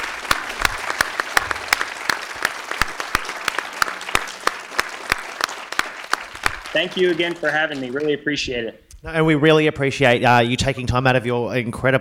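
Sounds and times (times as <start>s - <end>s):
small audience applause: 0.0s - 8.3s
speech: 6.8s - 11.9s.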